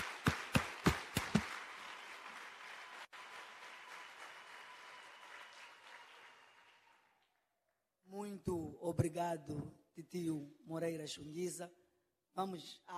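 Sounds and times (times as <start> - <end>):
crowd applause for the children: 0.0 - 7.4
speech: 8.4 - 11.8, 12.4 - 12.9.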